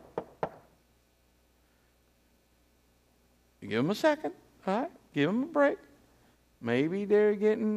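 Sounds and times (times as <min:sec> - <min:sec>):
knocking on a door: 0:00.0 - 0:00.7
speech: 0:03.6 - 0:05.9, 0:06.6 - 0:07.7.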